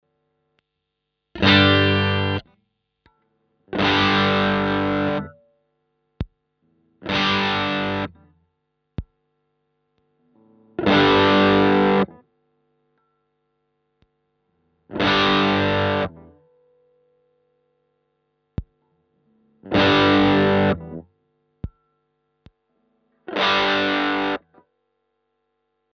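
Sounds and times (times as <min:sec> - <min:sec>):
BM20 high-gain distorted guitar: 0:01.4 - 0:02.5, 0:03.7 - 0:05.5, 0:06.7 - 0:08.4, 0:10.3 - 0:12.2, 0:14.9 - 0:16.7, 0:19.5 - 0:21.1, 0:22.6 - 0:24.6.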